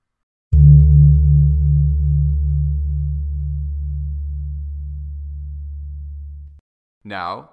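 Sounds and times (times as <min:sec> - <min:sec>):
lowest female gong agung struck: 0:00.6 - 0:06.4.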